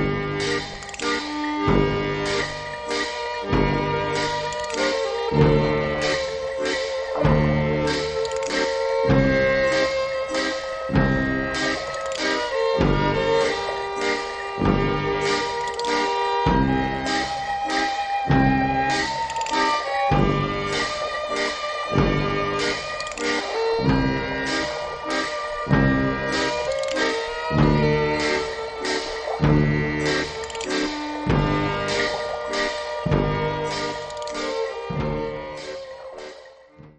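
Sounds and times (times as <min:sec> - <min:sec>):
waltz for strings and tuba: 0:00.0 - 0:36.9.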